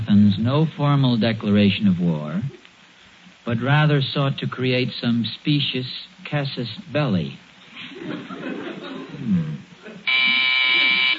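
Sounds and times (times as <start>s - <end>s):
speech: 0.1s - 2.6s, 3.4s - 8.6s
people murmuring and chuckling: 7.7s - 11.0s
doorbell buzzing: 10.1s - 11.1s.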